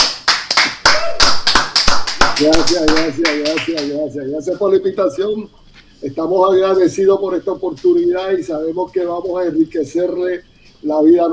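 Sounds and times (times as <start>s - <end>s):
crowd applause: 0.0s - 3.9s
speech: 2.4s - 11.3s.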